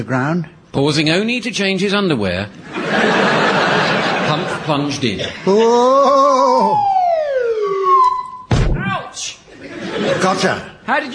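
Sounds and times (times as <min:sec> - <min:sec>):
speech: 0:00.0 - 0:03.7, 0:04.3 - 0:06.9, 0:10.0 - 0:11.1
laughter: 0:02.6 - 0:06.8, 0:09.5 - 0:10.8
swanee slide whistle: 0:06.7 - 0:08.5.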